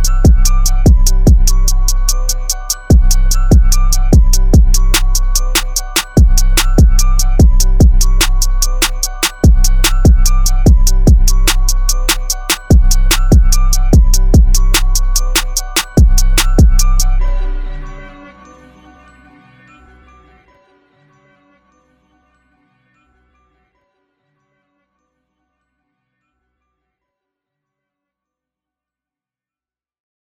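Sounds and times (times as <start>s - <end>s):
instrumental music: 0.0s - 19.5s.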